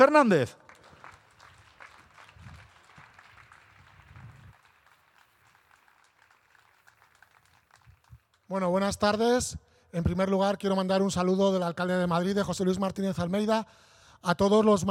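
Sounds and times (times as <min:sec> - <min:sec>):
speech: 0:00.0 - 0:00.6, 0:08.5 - 0:14.9
audience applause: 0:00.6 - 0:08.4.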